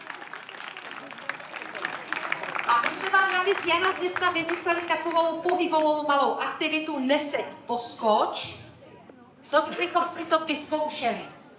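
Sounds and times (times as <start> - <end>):
audience applause: 0.0 - 5.3
speech: 2.7 - 8.6, 9.5 - 11.4.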